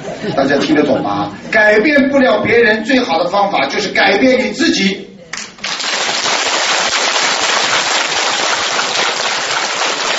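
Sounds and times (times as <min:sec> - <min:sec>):
speech: 0:00.2 - 0:05.1
large crowd clapping: 0:05.3 - 0:10.1.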